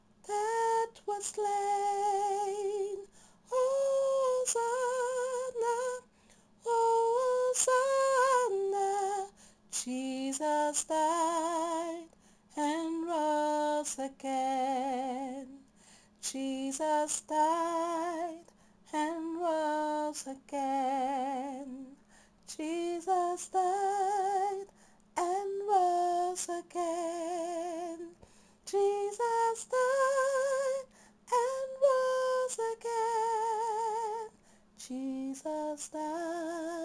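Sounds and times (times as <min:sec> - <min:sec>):
soprano singing: 0:00.2 - 0:15.6, 0:16.2 - 0:36.8.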